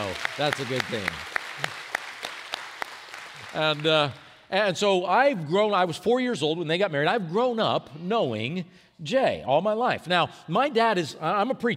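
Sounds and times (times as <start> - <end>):
speech: 0.0 - 1.8, 3.5 - 11.7
audience clapping: 0.0 - 4.5.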